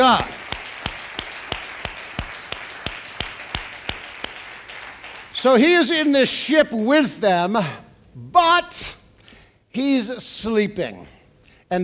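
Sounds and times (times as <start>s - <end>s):
audience clapping hands in steady unison rhythm: 0.0s - 5.6s
speech: 0.1s - 0.4s, 5.4s - 9.0s, 9.8s - 11.8s.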